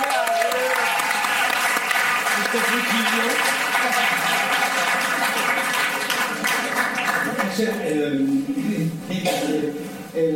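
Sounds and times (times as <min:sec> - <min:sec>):
audience applause: 0:00.0 - 0:07.6
speech: 0:02.5 - 0:04.4, 0:07.6 - 0:10.3.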